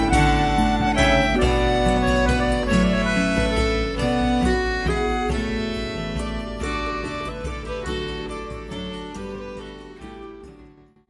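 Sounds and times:
Celtic waltz played by a duo: 0.0 - 10.8.

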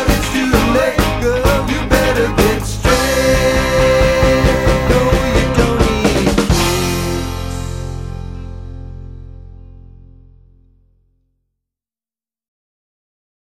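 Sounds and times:
classic rock band playing: 0.0 - 10.3.

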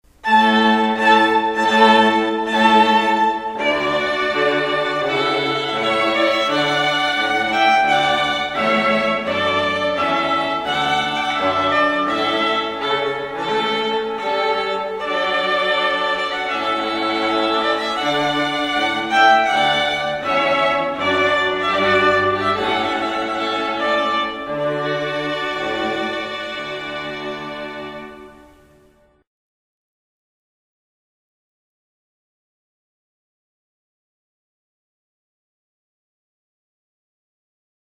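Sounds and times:
string quartet: 0.1 - 29.2.

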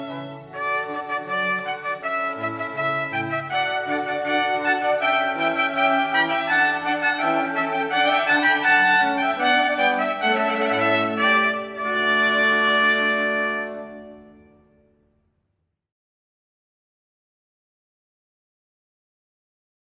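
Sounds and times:
string quartet: 0.0 - 14.4
two trumpets: 0.0 - 14.8.

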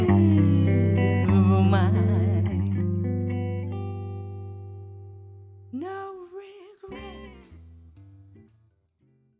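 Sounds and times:
woman singing: 0.0 - 2.8, 5.7 - 7.5
guitar: 0.0 - 9.3.

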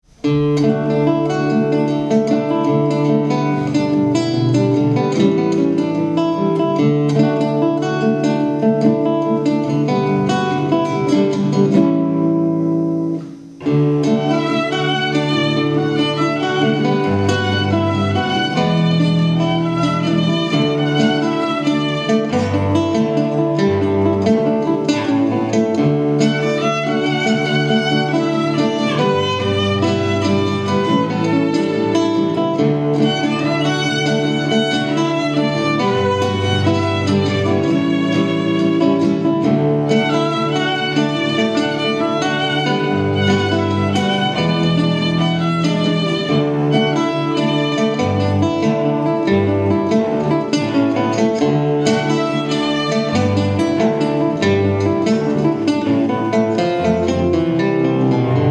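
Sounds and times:
string trio playing: 0.0 - 58.5.

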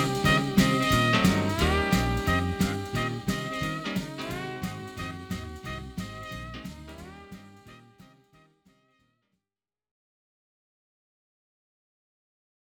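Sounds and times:
big band medley by a variety band: 0.0 - 8.1.

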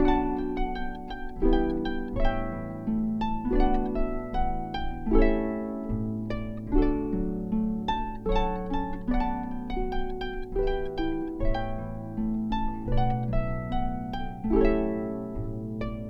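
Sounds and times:
harp playing allegro maestoso: 0.0 - 16.0.

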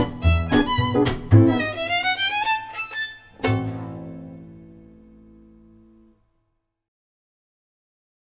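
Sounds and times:
Gipsy jazz string trio: 0.0 - 6.1.

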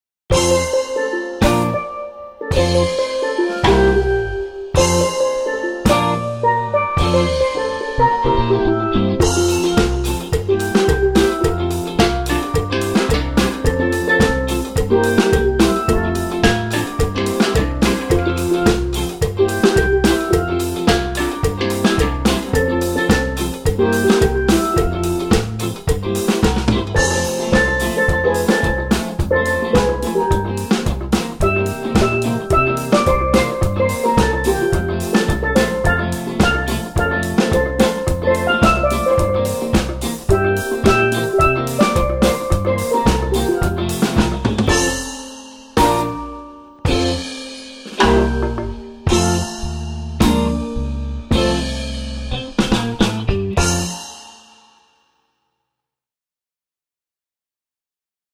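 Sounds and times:
steel drum band: 0.3 - 54.4.

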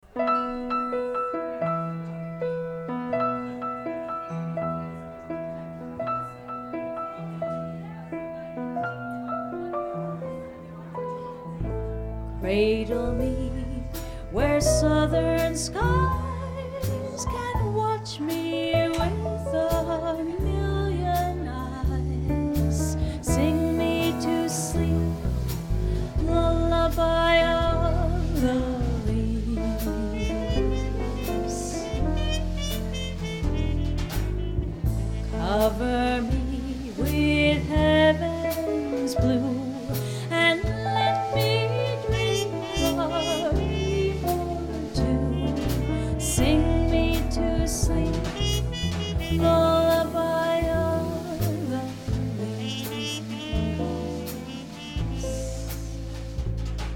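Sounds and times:
swing music: 0.0 - 56.9.

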